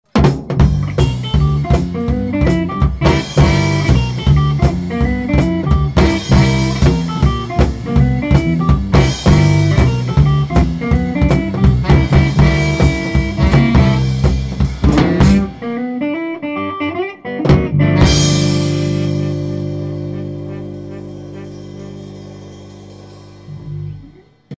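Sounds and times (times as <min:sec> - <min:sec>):
blues quartet playing: 0:00.2 - 0:24.2.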